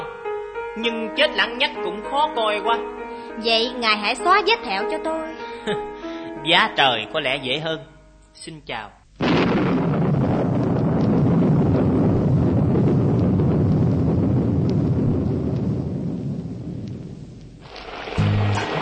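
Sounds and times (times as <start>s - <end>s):
speech: 0.8s - 9.7s
heavy rain: 9.2s - 18.7s.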